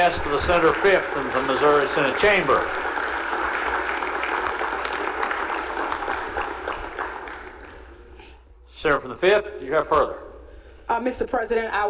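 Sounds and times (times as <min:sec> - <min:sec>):
speech: 0:00.0 - 0:02.8, 0:08.8 - 0:10.2, 0:10.9 - 0:11.8
applause in the Missouri Senate chamber for a retiring police officer: 0:00.0 - 0:08.2.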